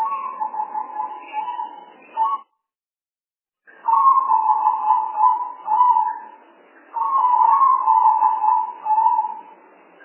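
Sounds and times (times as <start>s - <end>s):
spotted dove cooing: 0.0s - 2.4s, 3.9s - 6.2s, 7.0s - 9.4s.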